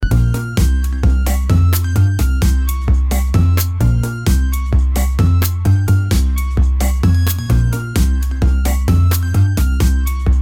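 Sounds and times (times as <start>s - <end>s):
cute fun and energetic music: 0.0s - 10.4s.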